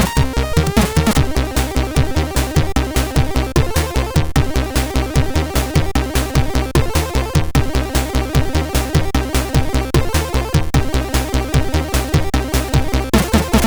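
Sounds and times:
improvised music: 0:00.0 - 0:13.6.

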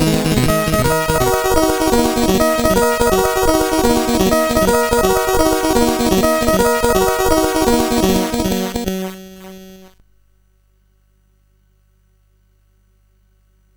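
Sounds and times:
acid synth: 0:00.0 - 0:09.9.

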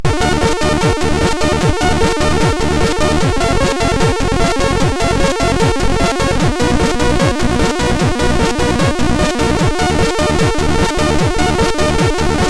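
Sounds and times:
trance on a MOS6581R4 SID chip: 0:00.0 - 0:12.4.

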